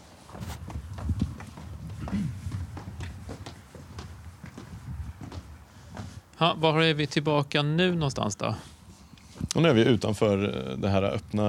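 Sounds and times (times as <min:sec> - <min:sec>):
footsteps walking down an indoor staircase: 0:00.0 - 0:06.5
speech: 0:06.4 - 0:08.7, 0:09.6 - 0:11.4.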